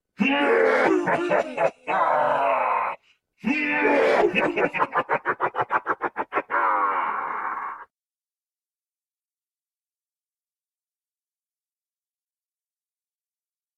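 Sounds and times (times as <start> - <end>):
evil laugh: 0.7 - 2.5, 3.8 - 7.9.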